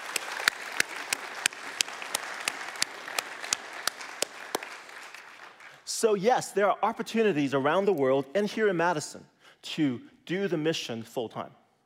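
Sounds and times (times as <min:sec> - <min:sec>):
round of applause: 0:00.0 - 0:05.9
speech: 0:06.0 - 0:11.6.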